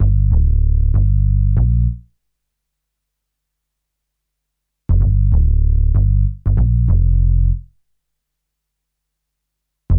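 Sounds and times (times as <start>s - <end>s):
hip-hop bass: 0.0s - 2.0s, 4.9s - 7.7s.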